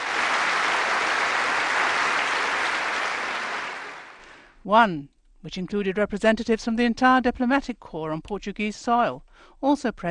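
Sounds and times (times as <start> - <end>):
large audience applauding in auditorium: 0.0 - 4.4
speech: 4.7 - 10.0.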